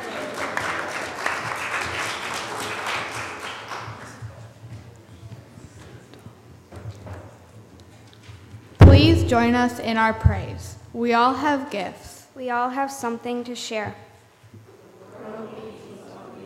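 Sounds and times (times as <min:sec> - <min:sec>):
applause: 0:00.0 - 0:04.5
speech: 0:09.0 - 0:14.1.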